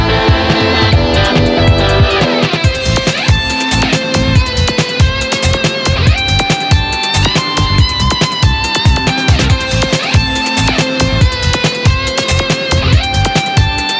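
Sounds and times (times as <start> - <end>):
big beat music: 0.0 - 13.9.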